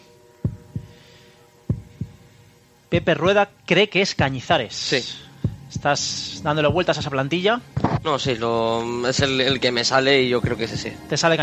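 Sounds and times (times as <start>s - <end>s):
faint hum: 0.0s - 11.4s
heartbeat sound effect: 0.4s - 1.0s, 1.7s - 2.3s, 3.0s - 3.4s, 5.4s - 7.2s, 7.8s - 8.4s, 9.2s - 9.6s, 10.4s - 11.0s
speech: 2.9s - 11.4s.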